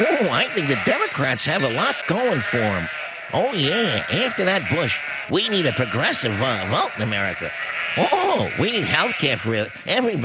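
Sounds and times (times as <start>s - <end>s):
laughter: 0.0s - 10.2s
sheep-like bleating: 0.0s - 10.2s
speech: 0.0s - 10.2s.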